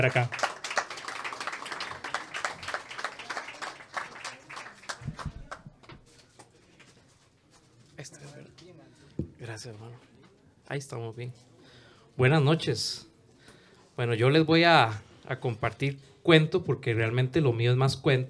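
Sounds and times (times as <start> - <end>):
speech: 0.0 - 0.5, 10.7 - 11.5, 12.2 - 13.1, 14.0 - 18.2
audience applause: 0.0 - 5.7.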